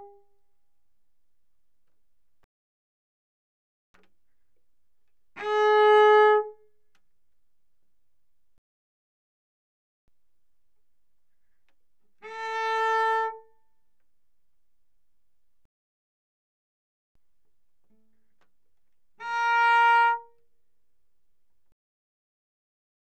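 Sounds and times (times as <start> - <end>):
bowed cello mezzo-forte on the D string C4 to Bb4: 5.4 - 6.6, 17.8 - 20.4.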